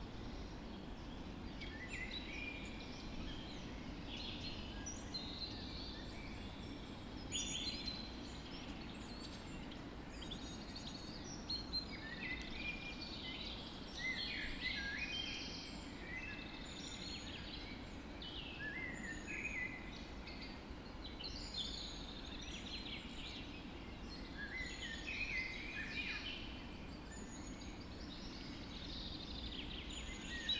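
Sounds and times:
birds dawn chorus: 0:00.0 - 0:30.5.

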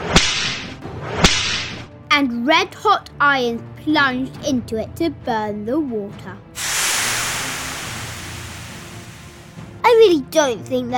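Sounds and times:
whip crack: 0:00.0 - 0:01.8
speech: 0:02.2 - 0:06.4, 0:09.9 - 0:10.9.

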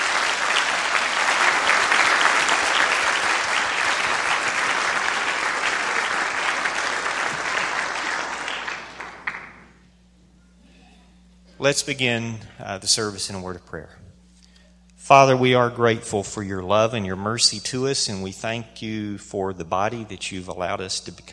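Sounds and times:
round of applause: 0:00.0 - 0:09.8
speech: 0:11.6 - 0:14.0, 0:15.1 - 0:21.3.

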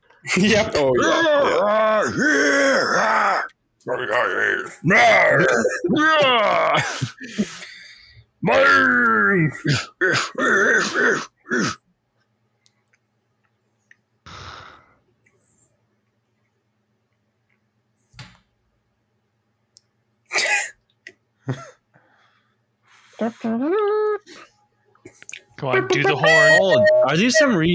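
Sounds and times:
speech: 0:00.2 - 0:07.7, 0:08.4 - 0:11.8, 0:21.5 - 0:21.7, 0:23.2 - 0:24.5, 0:25.6 - 0:27.7
yelling and grunting from a movie: 0:00.3 - 0:07.3, 0:08.4 - 0:11.8
laughter: 0:25.7 - 0:27.3.

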